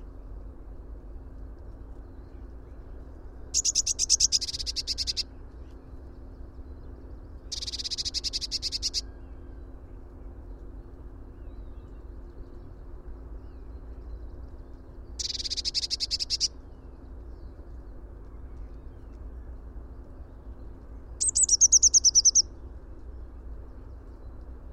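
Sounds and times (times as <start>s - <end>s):
faint low hum: 0.0s - 24.7s
speech: 3.6s - 4.2s
Eurasian blue tit trill: 3.6s - 5.2s, 7.5s - 9.1s, 15.2s - 16.5s, 21.2s - 22.5s.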